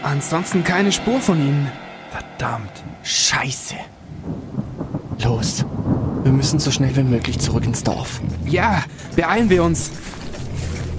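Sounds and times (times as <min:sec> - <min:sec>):
speech: 0:00.0 - 0:04.4, 0:05.2 - 0:10.2
thunder: 0:00.0 - 0:09.2
rain: 0:02.6 - 0:10.9.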